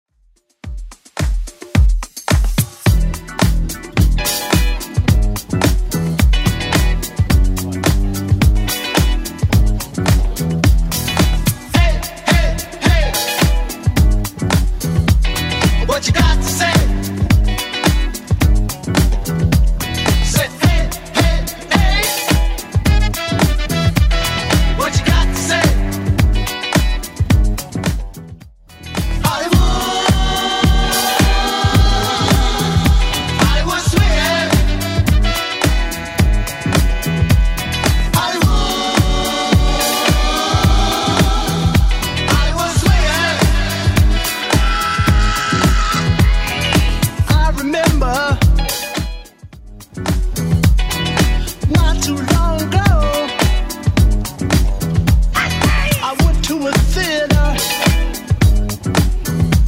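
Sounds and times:
1980s club edit dance music at 108 bpm: 0:00.8 - 0:28.0, 0:28.7 - 0:49.4, 0:50.2 - 0:59.6.

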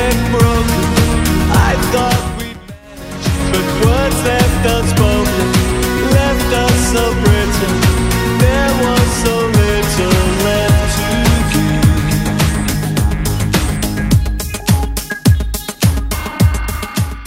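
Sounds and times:
80s drum machine beat at 105 bpm: 0:00.0 - 0:17.2.

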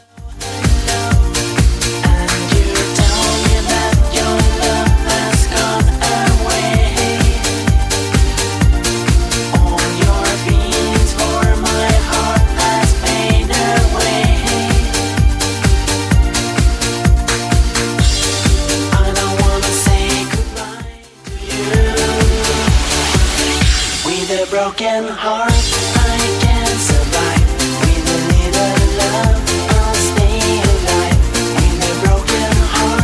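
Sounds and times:
80s drum loop: 0:00.0 - 0:24.6, 0:25.5 - 0:33.0.

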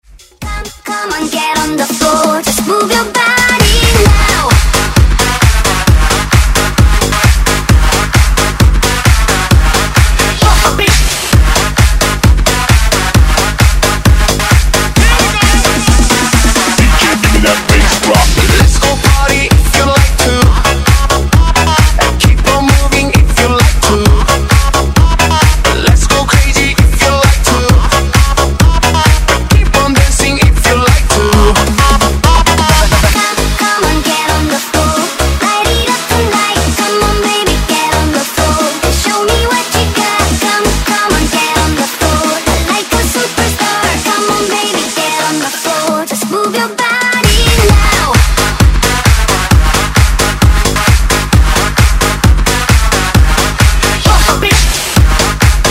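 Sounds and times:
dance music: 0:00.0 - 0:55.6.

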